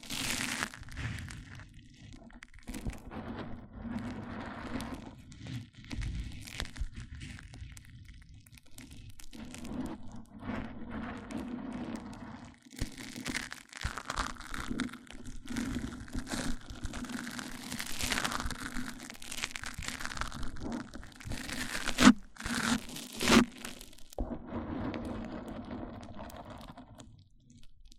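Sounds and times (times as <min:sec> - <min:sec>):
microphone-on-microphone crinkling and rubbing: 0:00.0 - 0:27.9.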